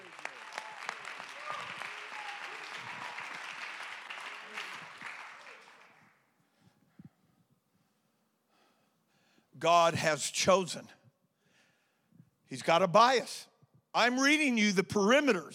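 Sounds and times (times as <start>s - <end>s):
audience clapping hands: 0.0s - 6.3s
speech: 9.6s - 11.0s, 12.5s - 15.5s.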